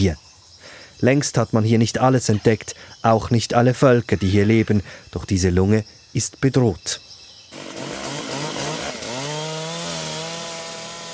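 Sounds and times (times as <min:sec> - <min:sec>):
speech: 0:00.0 - 0:00.2, 0:01.0 - 0:07.6
chainsaw cutting rainforest trees: 0:07.5 - 0:11.1.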